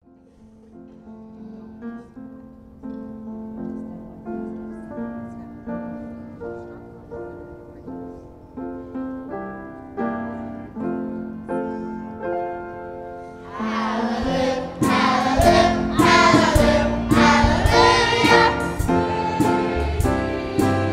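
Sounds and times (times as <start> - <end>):
children's choir singing: 13.4 - 20.9.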